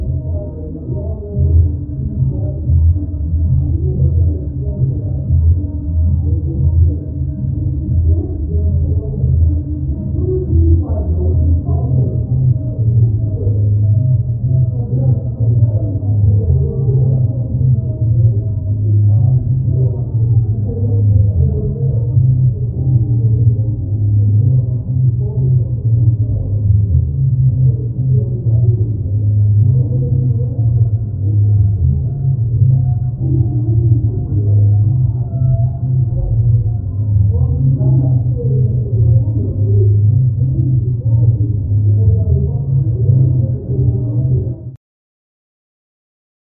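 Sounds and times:
noisy party at upstairs neighbours: 0.0 - 44.8.

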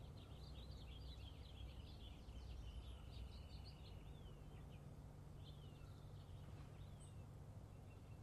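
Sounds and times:
birds singing in a suburb or large park: 0.0 - 8.2.

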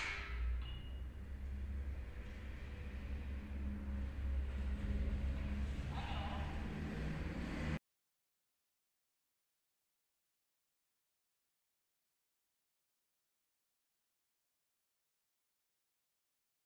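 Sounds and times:
apartment entrance sounds: 0.2 - 7.8.

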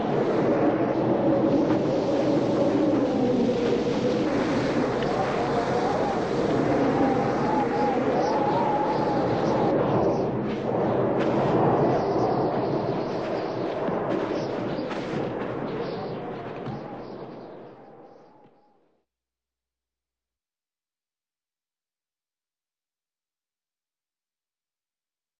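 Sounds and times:
hurricane wind gusting and whistling: 0.0 - 18.8.

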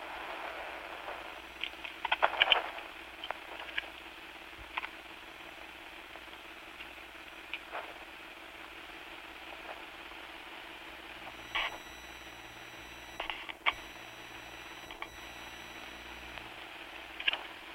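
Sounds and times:
walkie-talkie radio air noise: 0.0 - 3.9, 11.1 - 17.7.

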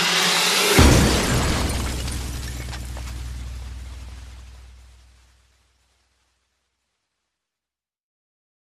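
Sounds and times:
scary sounds: 0.0 - 5.2.

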